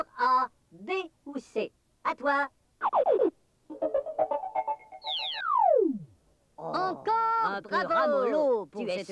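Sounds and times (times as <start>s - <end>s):
speech: 0.0s - 3.3s, 6.7s - 9.1s
cuckoo clock calling: 3.9s - 5.9s.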